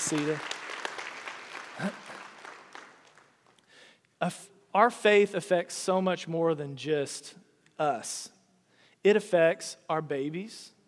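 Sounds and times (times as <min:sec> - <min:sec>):
audience applause: 0:00.0 - 0:03.3
speech: 0:00.1 - 0:00.5, 0:01.8 - 0:02.0, 0:04.2 - 0:08.4, 0:09.0 - 0:10.8.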